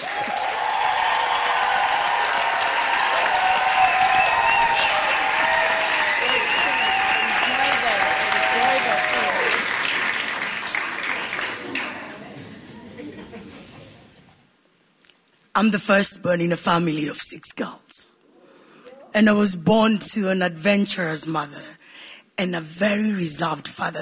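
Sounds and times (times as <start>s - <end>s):
audience clapping welcoming a speaker: 0.0s - 12.4s
speech: 15.6s - 17.8s, 19.1s - 21.8s, 22.4s - 23.9s.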